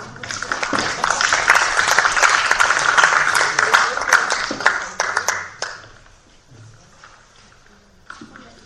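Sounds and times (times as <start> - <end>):
applause: 0.0 - 6.0.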